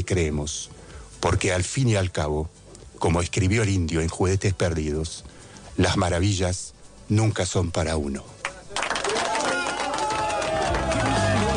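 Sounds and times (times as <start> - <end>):
speech: 0.1 - 8.4
applause: 8.4 - 11.5.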